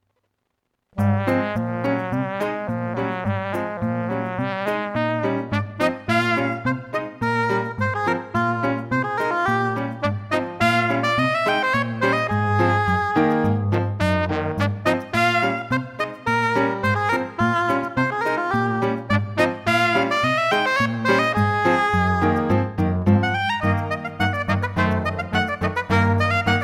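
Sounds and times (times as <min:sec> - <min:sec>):
barn dance music: 0:01.0 - 0:26.6.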